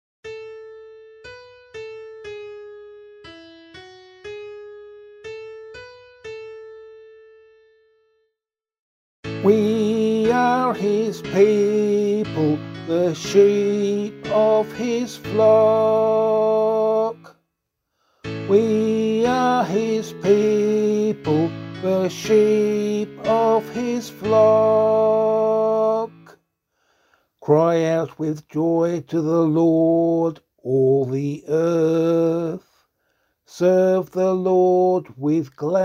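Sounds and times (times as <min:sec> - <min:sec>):
psalm singing: 0:09.3 - 0:17.3, 0:18.4 - 0:26.4, 0:27.4 - 0:32.8, 0:33.5 - 0:35.8.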